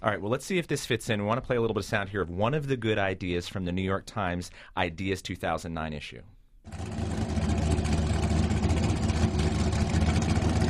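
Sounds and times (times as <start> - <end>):
speech: 0.0 - 7.0
American gas-guzzler car engine needing a tune-up idling: 6.7 - 10.6.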